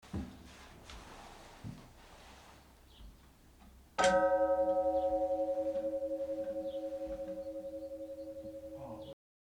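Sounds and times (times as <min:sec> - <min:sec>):
bell ringing: 0:04.0 - 0:09.2.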